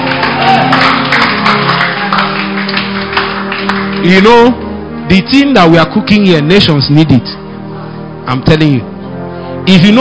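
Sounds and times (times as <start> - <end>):
audience clapping: 0.0 - 4.6
speech: 4.0 - 7.4, 8.3 - 8.9, 9.6 - 9.9.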